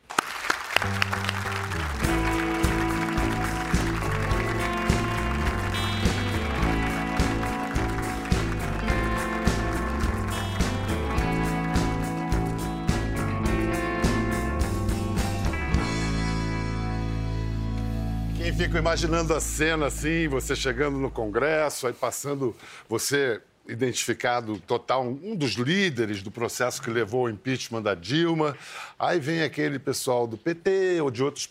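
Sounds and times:
audience applause: 0:00.0 - 0:13.1
loud rhythmic music with pulsing bass line: 0:00.8 - 0:21.6
speech: 0:18.7 - 0:31.5.

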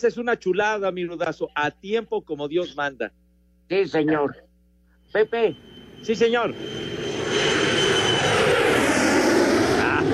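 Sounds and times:
speech: 0:00.0 - 0:04.5, 0:05.1 - 0:07.5
Volaris airplane taking off: 0:05.0 - 0:10.1.

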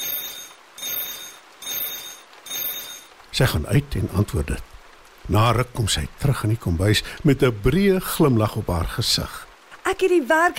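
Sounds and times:
mobile phone ringing: 0:00.0 - 0:03.2
speech: 0:03.4 - 0:04.7, 0:05.3 - 0:10.5.

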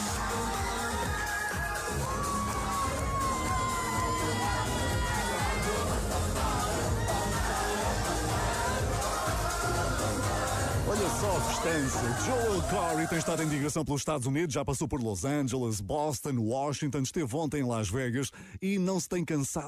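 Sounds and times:
large concert audience cheering: 0:00.0 - 0:13.6
speech: 0:11.6 - 0:19.6.

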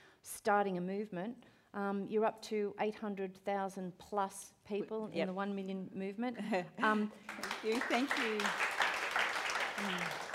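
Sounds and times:
speech: 0:00.4 - 0:08.6, 0:09.8 - 0:10.2
crowd clapping: 0:07.0 - 0:10.3.

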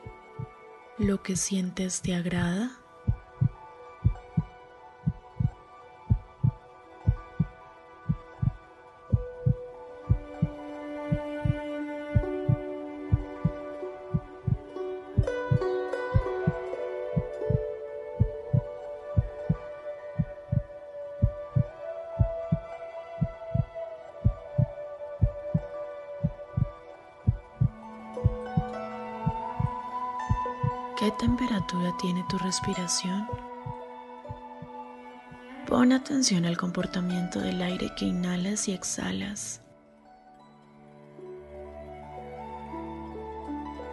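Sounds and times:
speech: 0:01.0 - 0:02.8, 0:32.3 - 0:33.5, 0:35.8 - 0:39.6
heartbeat: 0:03.1 - 0:04.5, 0:05.1 - 0:11.6, 0:12.2 - 0:14.6, 0:15.2 - 0:15.6, 0:16.2 - 0:31.8.

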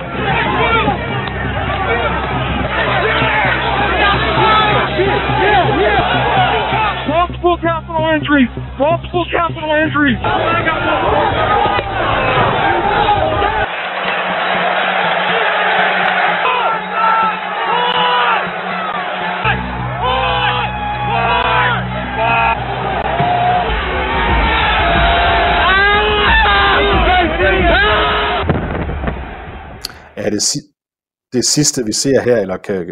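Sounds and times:
crowd of protesters shouting: 0:00.0 - 0:29.9
speech: 0:08.2 - 0:12.6, 0:30.3 - 0:30.7, 0:31.3 - 0:32.9.

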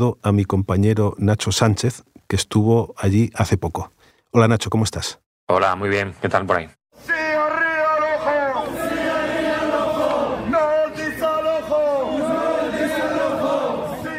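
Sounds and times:
speech: 0:00.0 - 0:07.1
large crowd chanting at a demonstration: 0:08.0 - 0:14.1.

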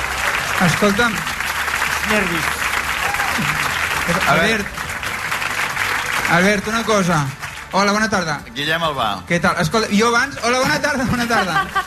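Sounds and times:
audience applause: 0:00.0 - 0:08.4, 0:10.6 - 0:11.8
speech: 0:00.6 - 0:01.3, 0:02.1 - 0:02.6, 0:03.4 - 0:04.8, 0:06.3 - 0:11.8
laughter: 0:03.1 - 0:04.8, 0:10.6 - 0:11.8.

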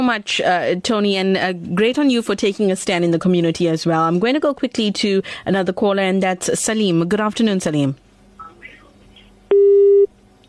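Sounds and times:
speech: 0:00.0 - 0:08.0
telephone busy signal after a caller's line drops: 0:09.5 - 0:10.1.

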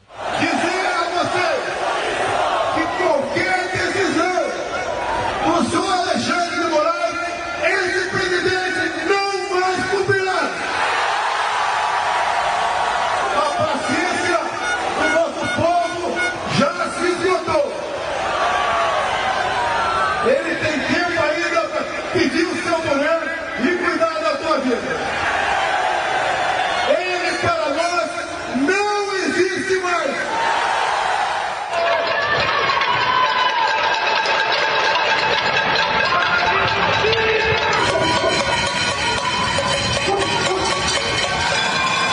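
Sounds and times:
crowd shouting and yelling: 0:00.0 - 0:42.1
pot-banging metallic clanging at a street protest: 0:33.7 - 0:42.1.

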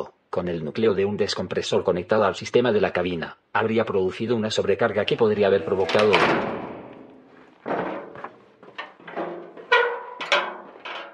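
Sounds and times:
speech: 0:00.0 - 0:06.6
cabin door slamming shut: 0:05.6 - 0:08.4
knocks and rattling thuds: 0:05.7 - 0:11.1.

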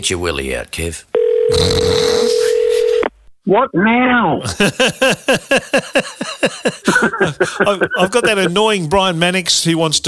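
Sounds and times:
speech: 0:00.0 - 0:02.4, 0:03.4 - 0:10.0
phone line steady tone: 0:01.2 - 0:03.1
laughter: 0:04.4 - 0:08.8.

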